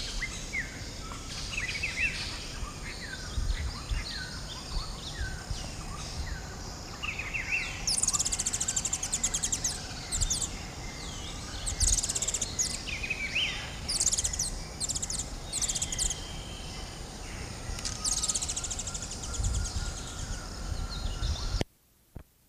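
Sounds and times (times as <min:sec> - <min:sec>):
background noise: 0:00.0 - 0:22.4
other birds' lower slurred whistles: 0:07.8 - 0:10.5, 0:11.5 - 0:16.3, 0:17.8 - 0:20.0
Mango chittering: 0:07.8 - 0:20.4.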